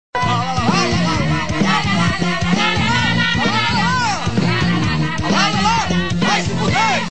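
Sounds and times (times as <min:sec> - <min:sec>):
person singing la la la: 0:00.2 - 0:07.0.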